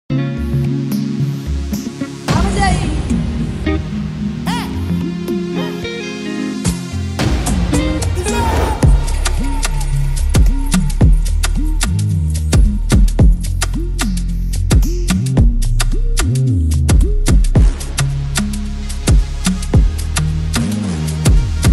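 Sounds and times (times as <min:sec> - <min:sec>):
instrumental music: 0:00.1 - 0:21.7.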